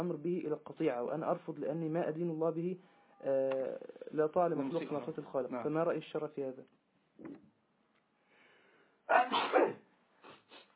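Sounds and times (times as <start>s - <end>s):
speech: 0.0s - 7.5s, 9.1s - 9.8s
sneeze: 9.1s - 10.7s.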